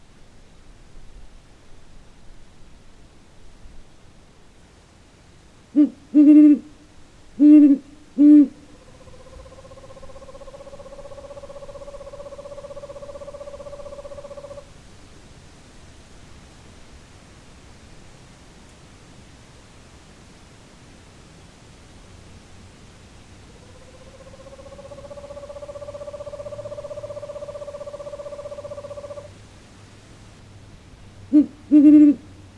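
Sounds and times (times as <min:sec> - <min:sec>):
great horned owl hooting: 0:05.7 - 0:06.8, 0:07.4 - 0:14.7, 0:23.4 - 0:29.3, 0:31.3 - 0:32.4.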